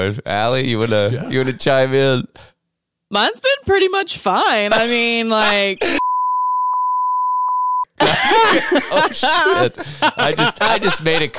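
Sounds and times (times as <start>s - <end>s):
speech: 0.0s - 2.5s, 3.1s - 6.0s, 8.1s - 11.3s
censor bleep: 6.0s - 7.9s
laughter: 8.0s - 11.3s.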